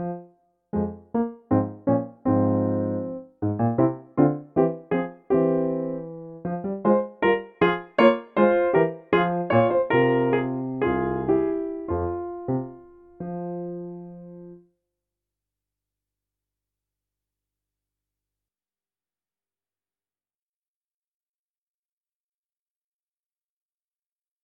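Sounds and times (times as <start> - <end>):
rondo in F minor on piano: 0.0 - 14.7.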